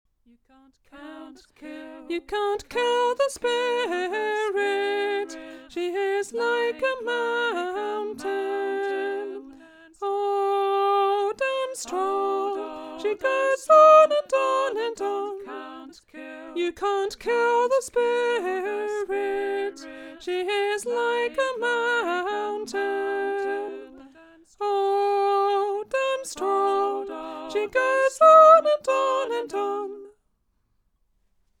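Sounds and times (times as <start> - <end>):
polyphonic voice: 0.5 - 30.2.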